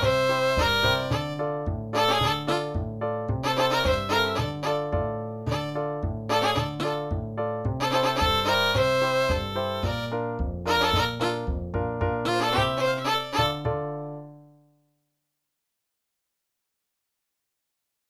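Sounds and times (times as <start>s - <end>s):
polka music: 0.0s - 14.4s.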